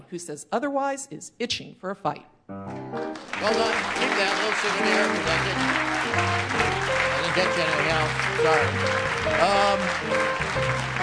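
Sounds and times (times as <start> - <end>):
speech: 0.1 - 11.0
audience applause at a live quiz event: 3.1 - 11.0.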